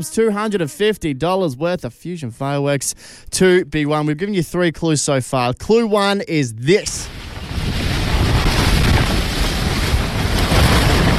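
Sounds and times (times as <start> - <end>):
speech: 0.0 - 7.8
fierce cyclone wind roaring: 6.9 - 11.1.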